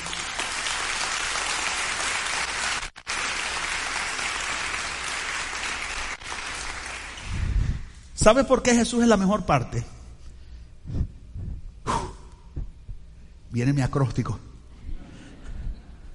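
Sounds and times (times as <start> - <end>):
audience applause: 0.0 - 7.7
speech: 8.2 - 9.9, 13.6 - 14.5.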